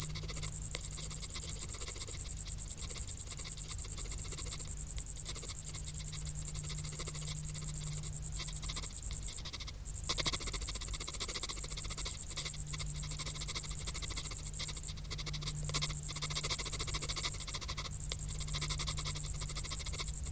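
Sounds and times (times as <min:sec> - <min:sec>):
cricket song: 0:00.0 - 0:20.3.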